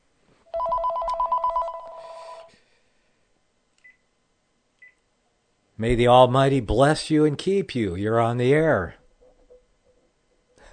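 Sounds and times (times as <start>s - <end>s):
telephone ringing for an incoming call: 0.5s - 2.5s
speech: 5.8s - 9.0s.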